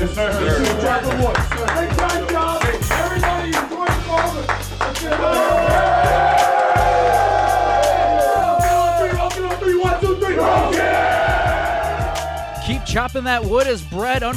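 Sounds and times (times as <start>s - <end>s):
speech: 0.0s - 2.2s, 13.0s - 14.3s
team cheering in a locker room after a win: 0.0s - 14.3s
thumping beat: 0.0s - 14.3s.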